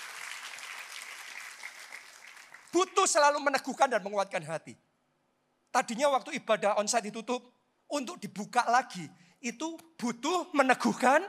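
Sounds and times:
audience clapping: 0.0s - 3.1s
speech: 2.7s - 4.9s, 5.8s - 11.2s.

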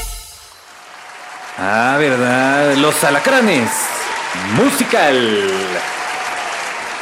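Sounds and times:
audience applause: 0.4s - 6.9s
speech: 1.6s - 3.8s, 4.3s - 6.0s.

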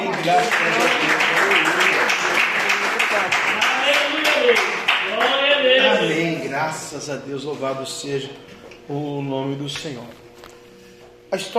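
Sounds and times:
congregation applauding: 0.0s - 5.8s
speech: 0.2s - 1.6s, 3.2s - 10.2s, 11.3s - 11.5s.

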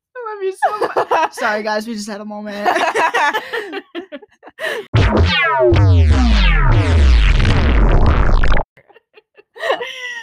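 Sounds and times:
speech: 0.4s - 4.0s, 4.6s - 6.9s
laughter: 0.6s - 1.5s, 2.5s - 4.9s, 8.8s - 10.2s
fart-like transition sound effect: 4.9s - 8.7s.

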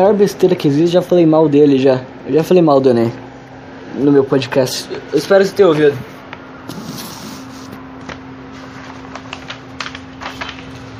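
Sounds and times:
speech: 0.0s - 3.2s, 3.9s - 6.1s, 6.7s - 7.0s
sheet of paper being opened: 6.7s - 10.9s.

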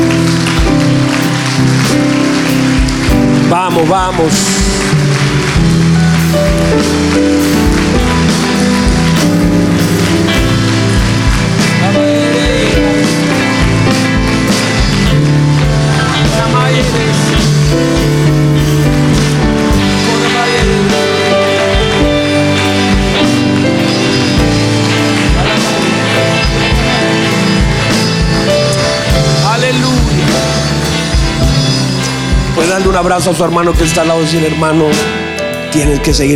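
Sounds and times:
audience applauding: 0.0s - 34.3s
speech: 3.8s - 5.0s, 33.0s - 36.3s.

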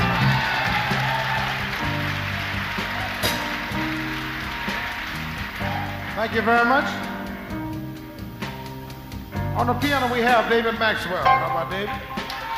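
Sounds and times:
audience applause for the band: 0.0s - 7.4s, 11.7s - 12.5s
speech: 6.2s - 7.1s, 9.6s - 12.2s.

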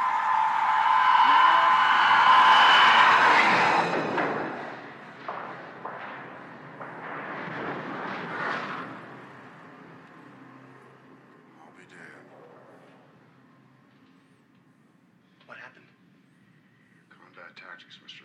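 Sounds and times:
torpedo impact explosion aboard a submarine: 0.0s - 10.0s.

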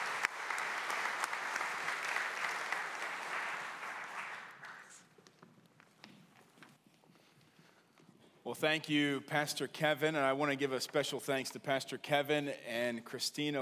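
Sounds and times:
audience applause for graduates: 0.0s - 5.0s
speech: 8.5s - 13.5s.

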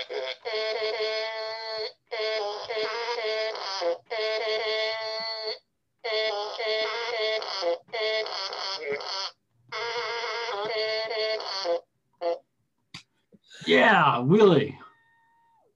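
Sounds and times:
country song played on a fart piano: 0.5s - 12.4s
speech: 13.7s - 14.8s.

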